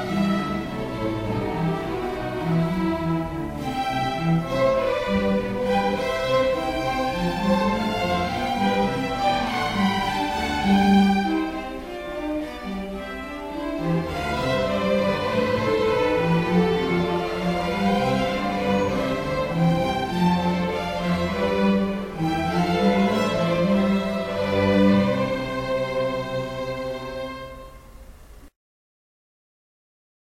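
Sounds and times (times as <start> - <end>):
string ensemble playing: 0.0 - 28.2.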